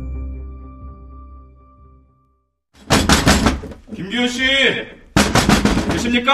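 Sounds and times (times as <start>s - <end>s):
pounding on a house door: 2.8s - 3.8s, 5.1s - 6.2s.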